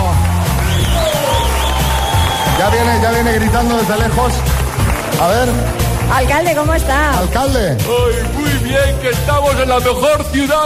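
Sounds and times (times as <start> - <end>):
audience applause: 0.0 - 7.4
speech: 2.7 - 10.6.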